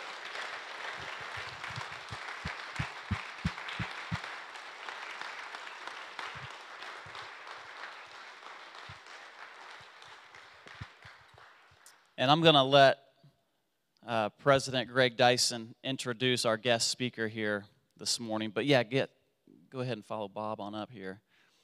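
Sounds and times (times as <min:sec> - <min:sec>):
soft audience applause welcoming guests at a Fairmount Friends gathering: 0:00.0 - 0:11.8
speech: 0:12.2 - 0:13.0, 0:14.1 - 0:21.3.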